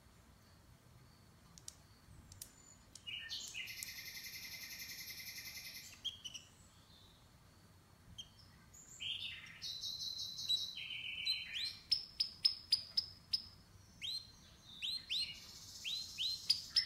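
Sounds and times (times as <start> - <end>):
canary singing: 0.0 - 16.8.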